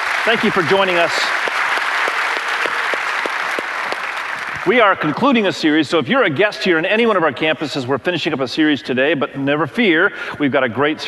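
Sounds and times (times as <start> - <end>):
audience applause at a multi-campus gathering: 0.0 - 5.4
speech: 0.2 - 1.4, 4.6 - 11.0.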